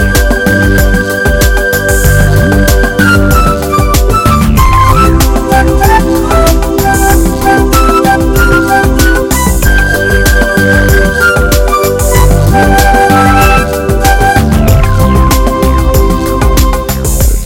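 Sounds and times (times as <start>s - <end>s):
pretty and soft pop music: 0.0s - 17.4s.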